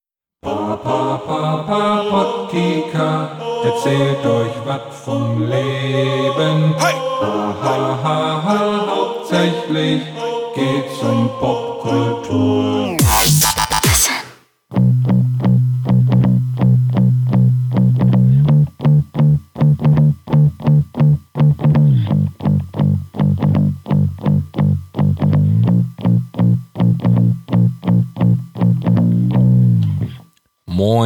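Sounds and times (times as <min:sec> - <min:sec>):
speech: 0:00.4 - 0:13.5
gritty bass guitar line: 0:12.9 - 0:30.2.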